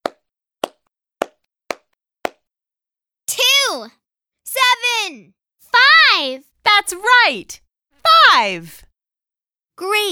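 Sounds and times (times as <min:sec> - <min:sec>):
sharp hand claps: 0:00.0 - 0:02.4
speech: 0:03.8 - 0:07.6, 0:08.3 - 0:08.9, 0:09.8 - 0:10.1.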